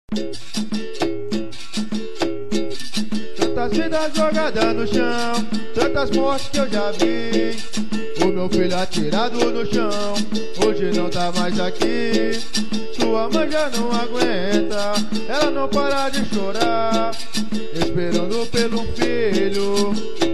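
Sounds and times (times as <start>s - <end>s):
capoeira music: 0.1s - 20.3s.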